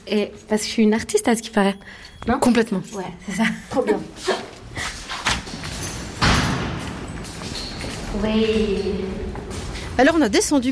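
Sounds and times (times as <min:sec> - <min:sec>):
speech: 0:00.0 - 0:04.9, 0:08.2 - 0:10.7
faint noise: 0:00.0 - 0:10.7
door opening: 0:05.0 - 0:10.3
door closing thud: 0:06.2 - 0:07.2.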